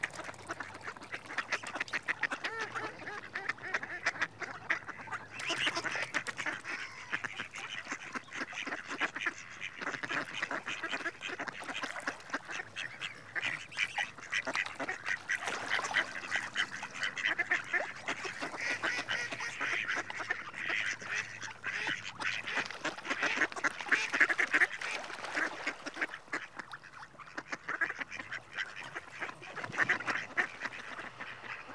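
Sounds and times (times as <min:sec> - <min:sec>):
male Mallard Anas platyrhynchos calling: 0:00.0 - 0:31.7.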